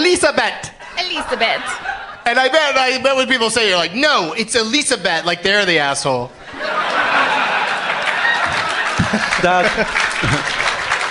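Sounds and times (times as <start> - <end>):
laughter: 0.8 - 3.6, 6.4 - 11.1
speech: 1.3 - 7.4, 9.1 - 10.5
audience applause: 6.6 - 11.1.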